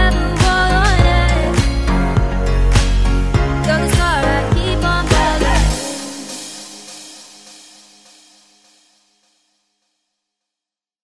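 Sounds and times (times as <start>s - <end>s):
sunny party vocal music: 0.0s - 7.4s.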